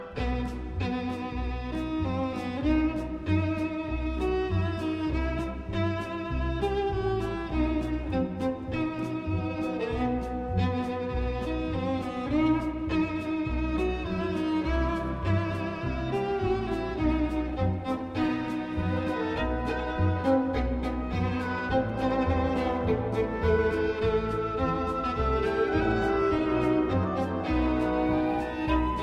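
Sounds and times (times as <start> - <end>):
instrumental folk tune: 0.0 - 29.0.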